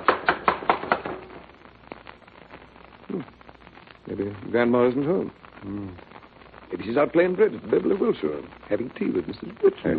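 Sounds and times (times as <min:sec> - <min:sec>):
knocking on a wooden door: 0:00.0 - 0:01.2
speech: 0:03.2 - 0:03.4, 0:04.1 - 0:06.1, 0:06.7 - 0:09.9.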